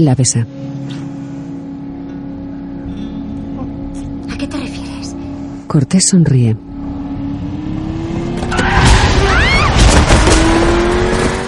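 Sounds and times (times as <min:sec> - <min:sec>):
speech: 0:00.0 - 0:01.0, 0:05.7 - 0:06.7
car engine roaring while driving onto a dirt track between cornfields: 0:00.4 - 0:11.4
tires rumbling on gravel of a dirt track: 0:07.9 - 0:11.4.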